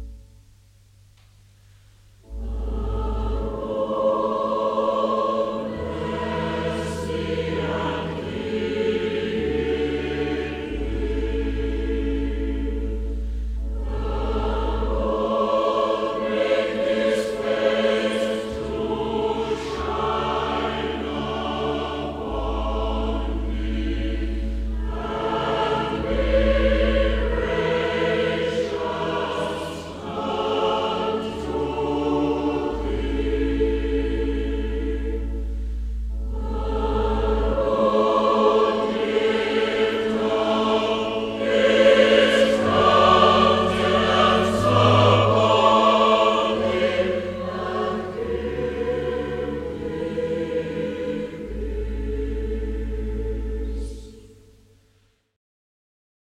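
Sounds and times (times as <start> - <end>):
choir singing hymns: 2.2 - 54.6.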